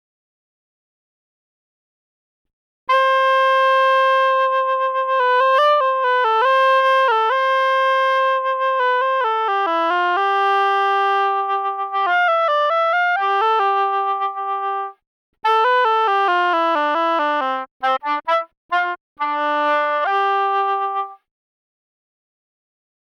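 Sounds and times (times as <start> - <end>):
oboe: 2.9 - 21.3.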